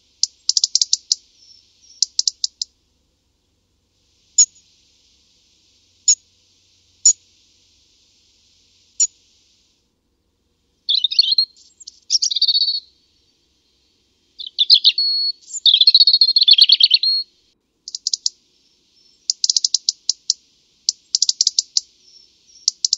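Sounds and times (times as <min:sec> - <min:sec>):
European robin singing: 0:00.0 - 0:02.8, 0:10.8 - 0:22.9.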